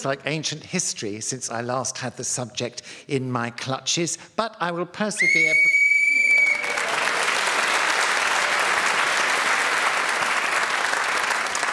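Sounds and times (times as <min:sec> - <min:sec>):
speech: 0:00.0 - 0:05.8
game show shrill whistle: 0:05.2 - 0:06.8
crowd applause: 0:06.1 - 0:11.7.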